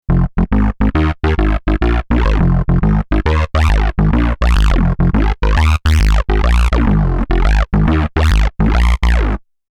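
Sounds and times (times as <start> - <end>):
bass: 0.0 - 9.5.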